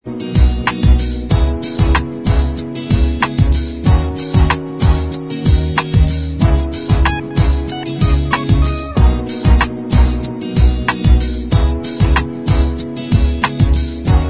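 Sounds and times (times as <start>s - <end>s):
instrumental backing track: 0.0s - 14.2s.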